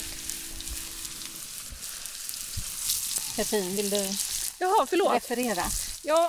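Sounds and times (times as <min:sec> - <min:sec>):
butter and oil sizzling in a pan over a campfire: 0:00.0 - 0:06.2
speech: 0:03.4 - 0:06.2.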